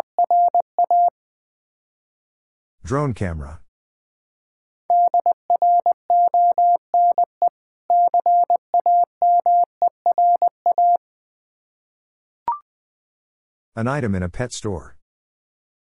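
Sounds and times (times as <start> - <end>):
Morse code tones at 20 wpm: 0.0 - 1.1, 4.9 - 11.0
speech: 2.9 - 3.6, 13.8 - 15.0.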